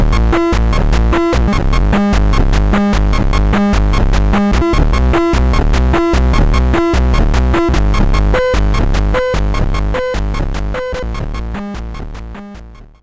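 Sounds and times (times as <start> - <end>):
Atari chiptune jam: 0.0 - 13.0.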